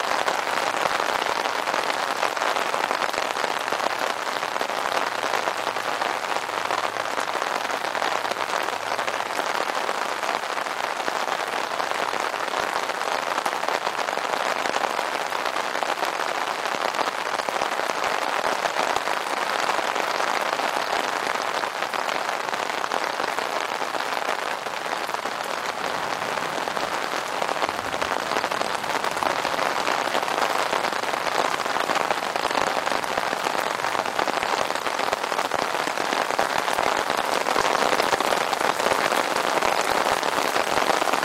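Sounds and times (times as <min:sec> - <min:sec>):
rain on an umbrella: 0:00.0 - 0:41.2.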